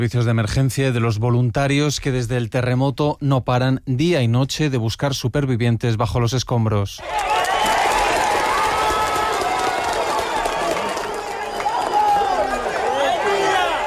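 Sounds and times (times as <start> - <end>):
speech: 0.0 - 7.6
crowd cheering and clapping at rescue site: 7.0 - 13.8
many voices shouting and calling out: 7.0 - 13.8.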